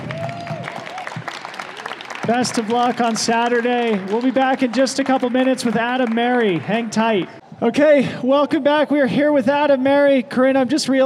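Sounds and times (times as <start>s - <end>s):
applause: 0.0s - 7.4s
speech: 2.3s - 11.0s.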